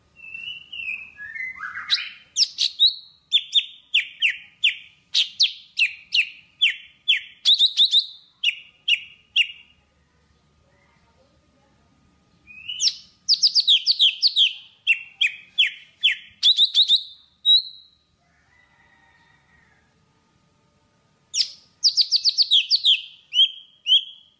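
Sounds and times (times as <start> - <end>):
Java sparrow singing: 0.2 - 9.7, 12.5 - 18.0, 21.3 - 24.3.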